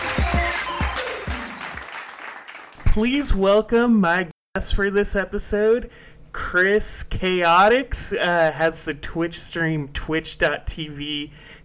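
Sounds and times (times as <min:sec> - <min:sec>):
applause: 0:00.0 - 0:02.8
speech: 0:02.9 - 0:11.6.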